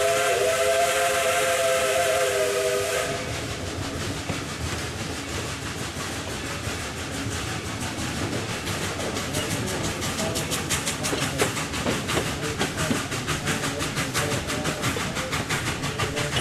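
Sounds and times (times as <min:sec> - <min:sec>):
1930s steam locomotive hissing: 0:00.0 - 0:16.4
steam train wheels clattering on the rails: 0:03.3 - 0:16.4.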